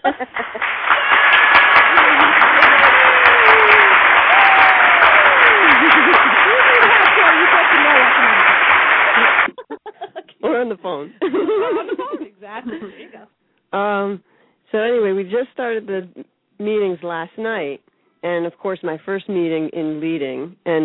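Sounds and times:
speech: 0.0 - 0.8, 10.7 - 20.8
laughter: 0.0 - 10.4, 11.2 - 13.0
applause: 0.2 - 9.5.

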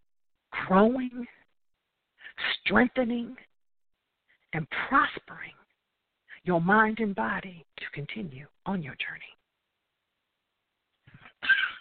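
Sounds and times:
speech: 0.7 - 1.4, 2.4 - 3.5, 4.5 - 5.6, 6.4 - 9.4
person coughing: 11.3 - 11.8.

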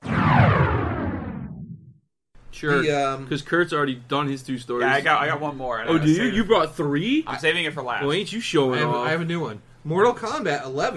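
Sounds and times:
whoosh sound effect: 0.0 - 1.9
speech: 2.6 - 10.9.

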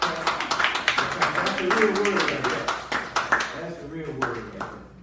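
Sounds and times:
people cheering: 0.0 - 2.7
small group clapping: 0.0 - 4.9
speech: 1.6 - 2.6.

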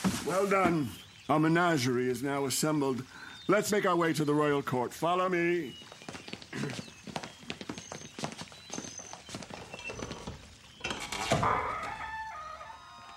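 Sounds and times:
speech: 0.2 - 6.8
horse hooves clip-clopping: 5.7 - 10.8
rooster crowing: 11.4 - 13.1.

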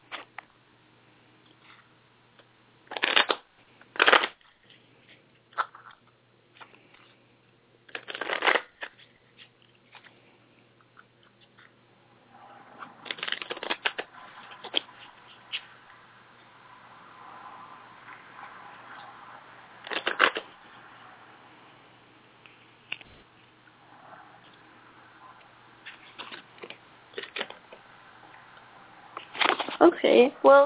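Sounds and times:
deck of cards shuffled for a reading: 2.9 - 6.0, 7.9 - 10.2, 13.0 - 15.7, 19.8 - 20.6, 25.8 - 27.8, 29.2 - 29.8
speech: 30.0 - 30.6.

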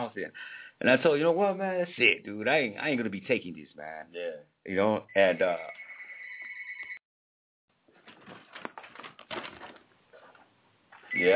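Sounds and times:
speech: 0.0 - 5.8, 11.2 - 11.3
phone ringing: 5.1 - 7.0.

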